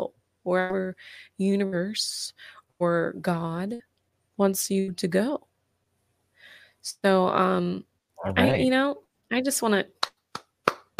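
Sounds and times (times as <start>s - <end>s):
speech: 0.5s - 5.5s, 6.8s - 10.0s
brief voiced exclamation: 8.2s - 8.7s
single person hand claps: 10.0s - 10.9s.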